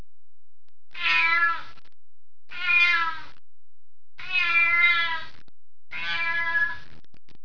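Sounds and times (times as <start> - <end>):
cat meowing: 1.0 - 1.7, 2.5 - 3.3, 4.2 - 5.3, 5.9 - 6.8.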